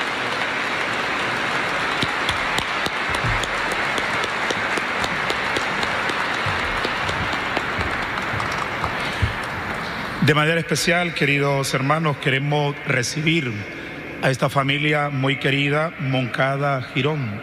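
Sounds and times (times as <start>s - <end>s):
audience applauding: 0.0s - 10.2s
speech: 10.3s - 17.4s.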